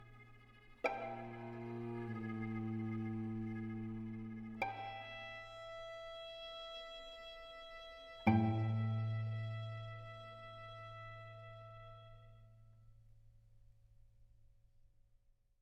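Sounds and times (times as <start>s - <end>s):
string quartet: 0.0s - 12.3s.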